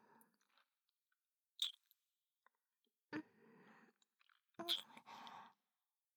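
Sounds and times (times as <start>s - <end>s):
wet mouth sounds: 1.6s - 1.8s, 4.0s - 5.0s.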